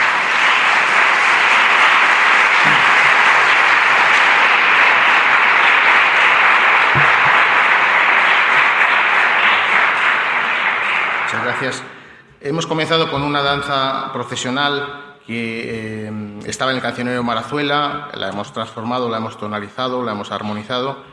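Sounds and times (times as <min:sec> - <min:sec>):
audience applause: 0:00.0 - 0:12.1
speech: 0:11.6 - 0:21.1.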